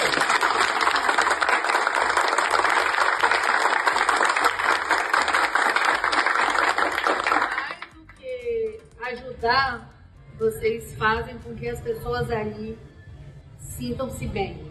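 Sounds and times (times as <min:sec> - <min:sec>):
round of applause: 0:00.0 - 0:08.2
speech: 0:09.4 - 0:12.9, 0:13.8 - 0:14.6.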